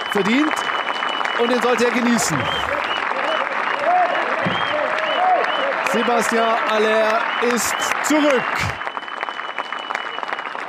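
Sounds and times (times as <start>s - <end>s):
applause from stadium stands: 0.0s - 10.6s
speech: 0.1s - 0.7s, 1.4s - 3.0s, 5.9s - 8.8s.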